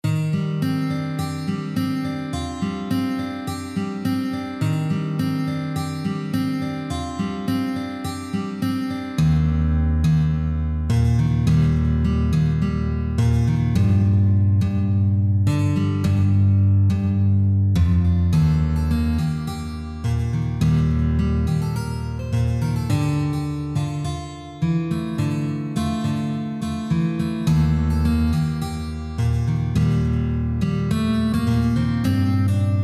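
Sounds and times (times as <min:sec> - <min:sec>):
guitar: 0:00.0 - 0:32.8.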